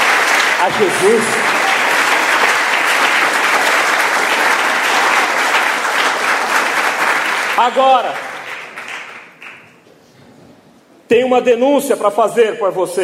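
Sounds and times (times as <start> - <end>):
audience applause: 0.0 - 9.7
speech: 0.6 - 1.5, 7.6 - 8.3, 11.1 - 13.0.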